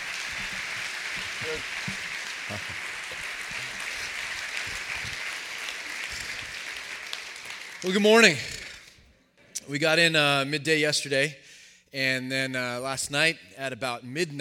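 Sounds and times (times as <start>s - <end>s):
audience applause welcoming a guest speaker at a church service: 0.0s - 8.9s
speech: 1.5s - 2.9s, 7.8s - 8.5s, 9.7s - 14.4s.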